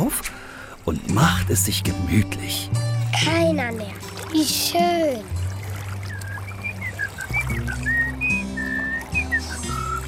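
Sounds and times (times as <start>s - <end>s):
speech: 0.1s - 5.3s
person whistling like birdsong: 6.0s - 10.0s.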